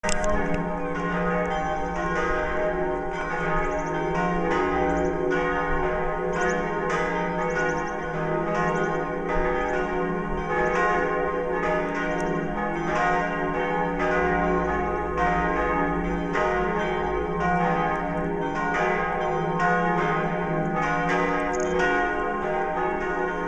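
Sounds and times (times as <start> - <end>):
church bells of Mariae Himmelfahrt ringing: 0.0 - 23.4.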